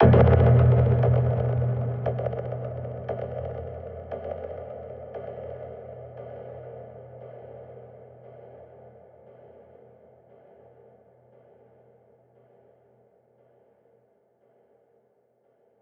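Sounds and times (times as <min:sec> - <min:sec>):
impact sound effect: 0:00.0 - 0:04.2.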